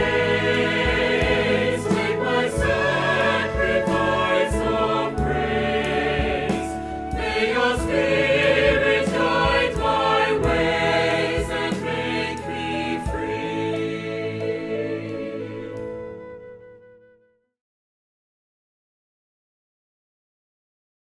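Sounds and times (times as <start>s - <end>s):
SATB four-part vocal singing: 0.0s - 15.8s.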